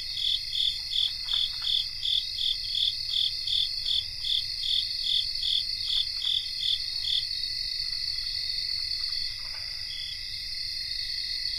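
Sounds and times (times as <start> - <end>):
cricket chorus steady high ringing trill in North America: 0.0 - 11.5.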